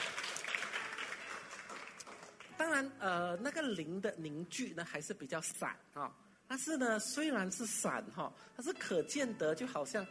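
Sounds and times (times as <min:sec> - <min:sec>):
faint church congregation applause after worship: 0:00.0 - 0:02.5
speech: 0:02.6 - 0:10.0.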